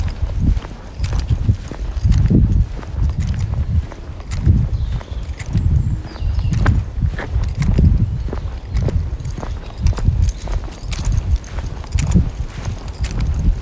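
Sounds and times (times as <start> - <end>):
footsteps rustling and crunching during a walk in the woods with a dog: 0.0 - 13.6.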